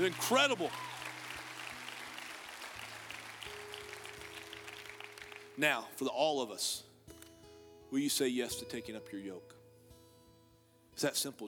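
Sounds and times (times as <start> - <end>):
speech: 0.0 - 0.9, 5.6 - 6.9, 7.9 - 9.6, 11.0 - 11.4
crowd applause: 0.0 - 5.6.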